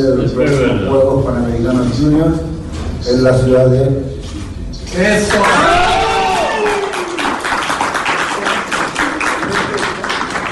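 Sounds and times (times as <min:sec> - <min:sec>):
speech: 0:00.0 - 0:04.1, 0:05.0 - 0:05.8
crowd shouting and cheering: 0:05.3 - 0:07.4
crowd applause at announcement: 0:05.3 - 0:10.5.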